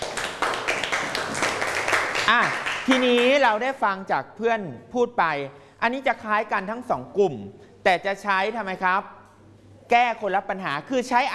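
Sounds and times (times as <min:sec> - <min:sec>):
group clapping: 0:00.0 - 0:03.5
speech: 0:02.3 - 0:09.2, 0:09.9 - 0:11.3.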